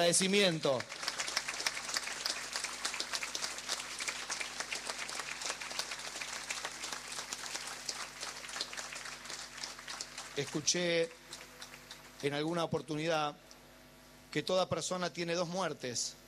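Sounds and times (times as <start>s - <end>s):
speech: 0.0s - 1.1s, 10.4s - 11.2s, 12.2s - 13.4s, 14.3s - 16.2s
large crowd applauding: 0.0s - 12.3s.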